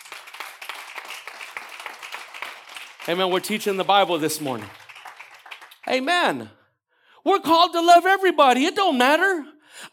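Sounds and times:
audience applause: 0.0 - 6.0
speech: 3.1 - 4.8, 5.9 - 6.6, 7.2 - 9.9.

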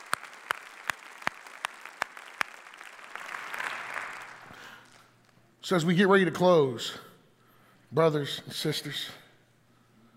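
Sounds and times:
audience hand clapping: 0.0 - 5.4
speech: 5.7 - 7.1, 7.9 - 9.2.

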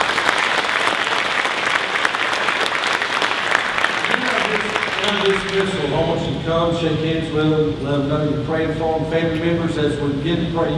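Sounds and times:
audience applauding: 0.0 - 6.0
speech: 5.1 - 10.7.

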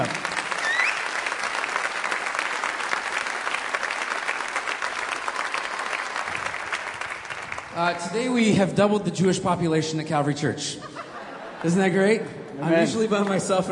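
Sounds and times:
speech: 0.0 - 0.2, 7.8 - 10.9, 11.6 - 13.7
audience round of applause: 0.0 - 8.0
laughter: 10.6 - 13.7.

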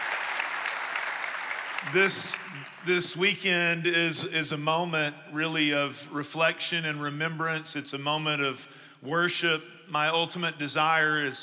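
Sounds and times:
church worship service audience applause: 0.0 - 2.8
speech: 1.8 - 11.4.

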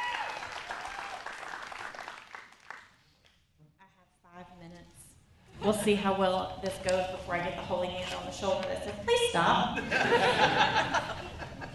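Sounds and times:
audience hand clapping: 0.0 - 3.3
speech: 5.6 - 11.3
laughter: 9.8 - 11.7.

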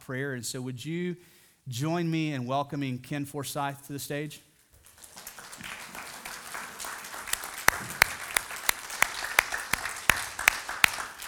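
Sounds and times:
speech: 0.1 - 4.5
audience applause: 4.9 - 11.2.

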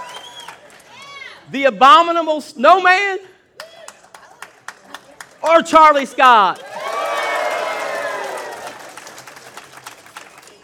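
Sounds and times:
audience applause: 0.0 - 1.0, 3.8 - 5.7, 6.6 - 10.6
speech: 1.5 - 3.3, 5.4 - 6.7.

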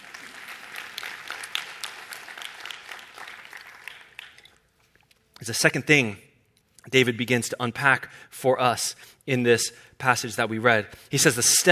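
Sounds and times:
crowd clapping: 0.0 - 4.7
speech: 5.4 - 6.3, 6.9 - 11.7.

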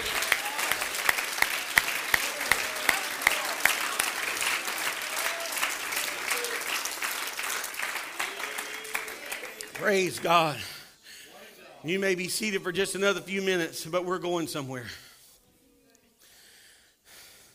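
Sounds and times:
audience clapping hands: 0.0 - 10.8
speech: 9.8 - 10.7, 11.8 - 15.0.

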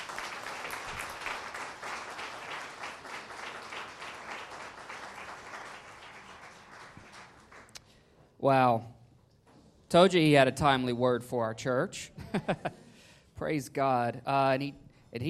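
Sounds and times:
church audience applause: 0.0 - 7.8
speech: 8.4 - 8.9, 9.9 - 12.8, 13.4 - 15.2.

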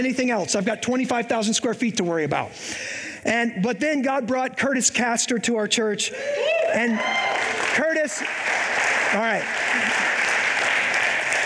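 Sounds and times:
speech: 0.0 - 10.1
audience clapping: 6.8 - 11.4.

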